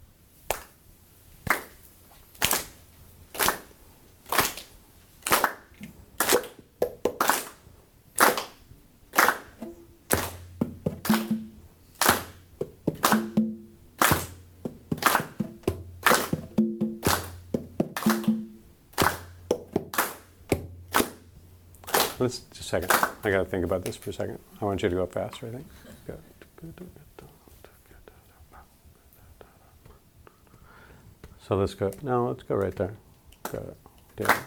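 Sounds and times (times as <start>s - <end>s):
hands clapping a steady pulse: 0.5s - 0.8s, 1.4s - 24.2s, 31.2s - 34.4s
speech: 22.2s - 27.0s, 31.5s - 34.4s.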